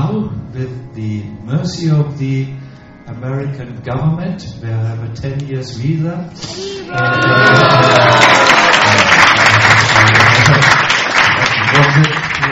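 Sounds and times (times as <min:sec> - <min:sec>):
speech: 0:00.6 - 0:08.4
crowd applause: 0:06.8 - 0:12.5.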